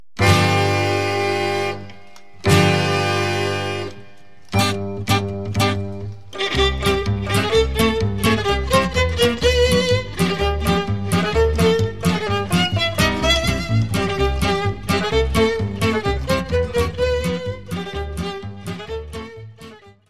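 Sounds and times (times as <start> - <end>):
American square dance music: 0.2 - 19.8.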